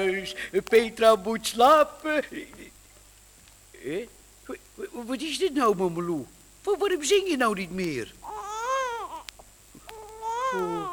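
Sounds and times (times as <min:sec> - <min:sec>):
speech: 0:00.1 - 0:02.6, 0:03.8 - 0:08.4, 0:10.5 - 0:10.9
baby crying in a cradle: 0:08.2 - 0:10.9.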